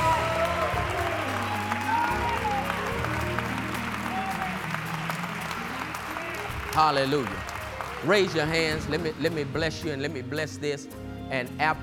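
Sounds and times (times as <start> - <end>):
audience applause: 0.0 - 9.7
speech: 6.8 - 11.8.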